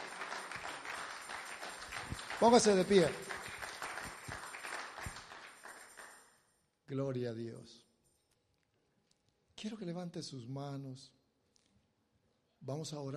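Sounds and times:
audience applause: 0.0s - 6.3s
speech: 2.4s - 3.3s, 6.9s - 7.9s, 9.6s - 11.2s, 12.6s - 13.1s.

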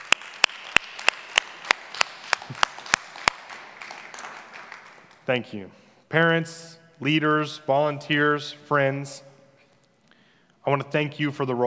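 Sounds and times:
audience clapping: 0.0s - 5.5s
speech: 2.5s - 2.7s, 5.3s - 9.3s, 10.6s - 11.6s.

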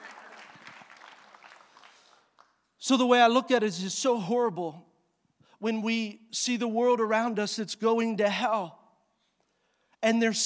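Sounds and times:
audience clapping: 0.0s - 2.7s
speech: 2.8s - 4.9s, 5.6s - 8.8s, 10.0s - 10.4s.

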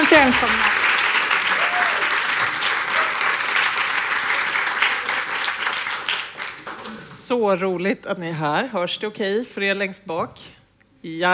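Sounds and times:
audience applause: 0.0s - 7.2s
speech: 0.2s - 0.8s, 7.3s - 11.3s.

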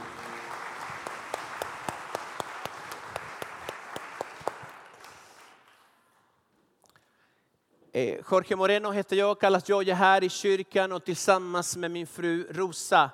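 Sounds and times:
crowd applause: 0.0s - 5.9s
speech: 8.0s - 13.1s.

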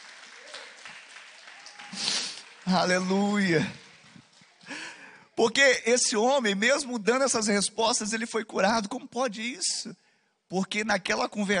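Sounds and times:
audience applauding: 0.0s - 5.2s
speech: 2.7s - 3.8s, 5.4s - 11.5s.

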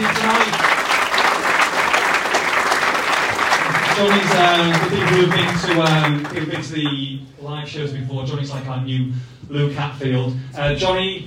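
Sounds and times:
live audience clapping: 0.0s - 7.2s
speech: 4.0s - 11.2s.

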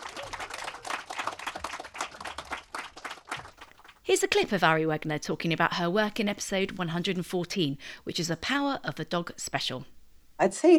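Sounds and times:
audience applause: 0.0s - 3.6s
speech: 4.1s - 10.7s.

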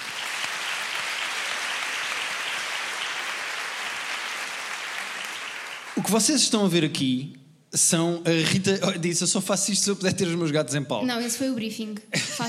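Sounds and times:
audience applause: 0.0s - 6.5s
speech: 6.0s - 12.4s.

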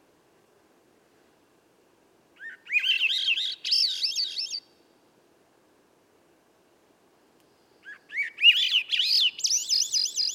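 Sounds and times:
Swainson's thrush flute-like song: 2.4s - 4.7s, 7.8s - 10.3s.

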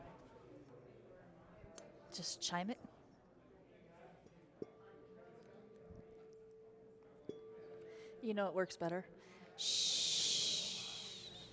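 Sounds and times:
speech: 2.2s - 3.0s, 8.2s - 10.1s
person shushing: 9.6s - 11.5s.

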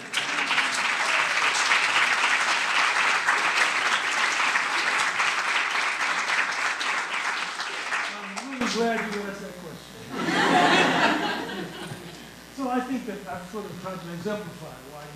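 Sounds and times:
audience applause: 0.0s - 9.4s, 10.2s - 12.2s
speech: 8.7s - 9.5s, 12.7s - 15.1s
laughter: 10.0s - 12.3s.

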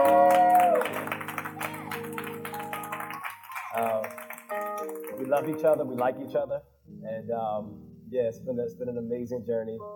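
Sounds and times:
audience clapping: 0.0s - 6.2s
speech: 5.3s - 9.9s.

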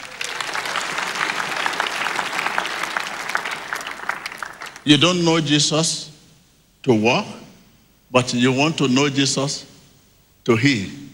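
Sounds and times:
audience applause: 0.0s - 4.9s
speech: 4.8s - 6.1s, 6.8s - 7.4s, 8.1s - 9.7s, 10.4s - 11.1s.

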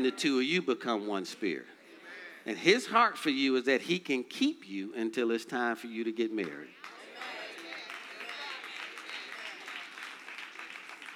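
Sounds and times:
speech: 0.0s - 1.8s, 2.4s - 7.3s
church audience hand claps: 6.4s - 11.1s.

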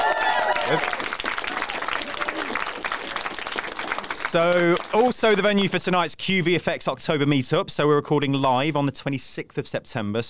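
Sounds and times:
audience round of applause: 0.0s - 5.4s
speech: 0.7s - 1.0s, 4.3s - 10.2s.

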